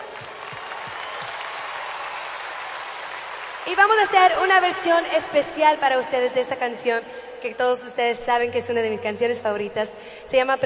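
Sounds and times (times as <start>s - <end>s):
audience applause: 0.0s - 4.3s
speech: 3.7s - 10.6s.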